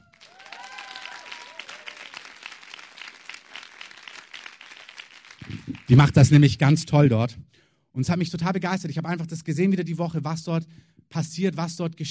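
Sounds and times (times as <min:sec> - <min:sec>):
whistles: 0:00.0 - 0:02.2
crowd applauding: 0:00.0 - 0:06.5
speech: 0:05.9 - 0:12.0.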